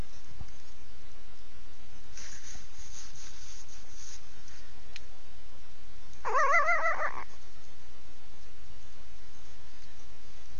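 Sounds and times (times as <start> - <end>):
fox kit whining call: 6.2 - 7.4.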